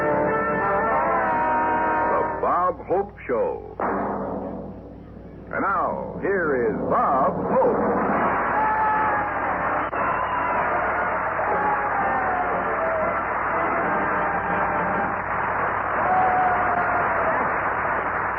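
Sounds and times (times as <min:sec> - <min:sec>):
audience applause: 0:00.0 - 0:02.4, 0:07.8 - 0:18.3
speech: 0:02.7 - 0:04.6, 0:05.5 - 0:08.3.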